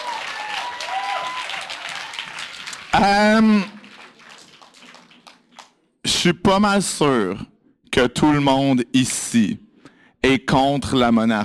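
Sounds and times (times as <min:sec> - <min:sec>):
crowd applauding: 0:00.0 - 0:05.8
speech: 0:03.0 - 0:03.8, 0:06.2 - 0:09.6, 0:10.2 - 0:11.4.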